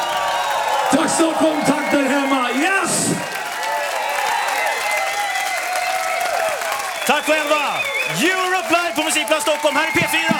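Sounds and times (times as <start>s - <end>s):
audience applause after live concert: 0.0s - 10.3s
whistles and cheers: 0.0s - 10.3s
speech: 0.9s - 3.4s, 7.3s - 10.3s.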